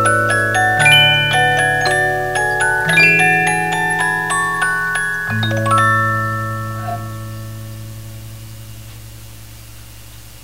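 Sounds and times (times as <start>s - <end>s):
50-note music box melody: 0.0s - 8.0s.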